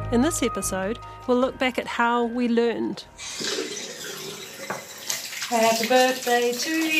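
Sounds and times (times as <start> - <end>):
speech: 0.1 - 3.5, 5.5 - 6.9
running tap while hands are washed: 3.2 - 6.9.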